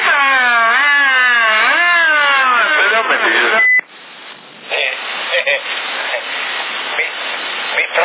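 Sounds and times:
warbling electronic siren sound effect through a tinny CB radio in Sassari: 0.0s - 3.7s
crackling CB radio static with brief bursts of noise: 1.6s - 8.0s
short beep: 3.6s - 3.9s.

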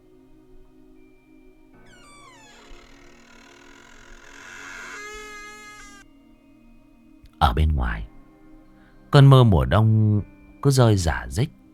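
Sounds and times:
damp wooden door creaking open: 1.8s - 6.0s
speech: 7.4s - 8.1s, 9.1s - 11.6s.

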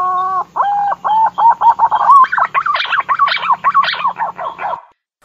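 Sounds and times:
green pigeon calling with bubbling whistled notes: 0.2s - 4.9s.

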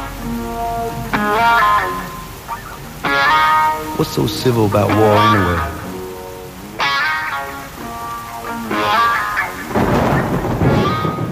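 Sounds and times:
rain: 0.0s - 11.3s
speech: 4.0s - 5.8s
thunder: 9.7s - 11.3s.

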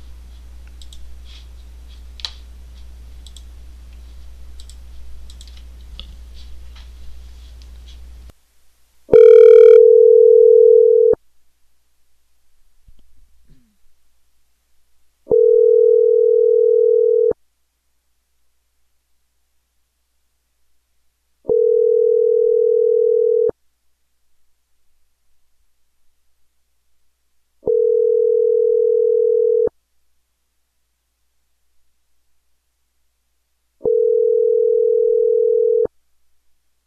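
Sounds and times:
faint clicks: 0.6s - 1.0s, 3.2s - 4.0s, 4.6s - 6.2s
telephone ringback tone while calling someone back: 9.1s - 11.2s, 15.3s - 17.4s, 21.5s - 23.5s, 27.6s - 29.7s, 33.8s - 35.9s.

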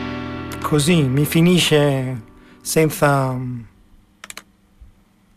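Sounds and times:
speech: 0.7s - 3.7s
clicks: 4.2s - 4.5s.

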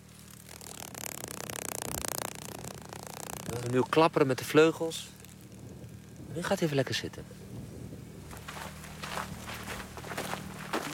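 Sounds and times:
low continuous hum: 0.0s - 10.9s
speech: 3.5s - 5.2s, 6.3s - 7.4s
footsteps through dry heath vegetation: 8.3s - 10.9s.

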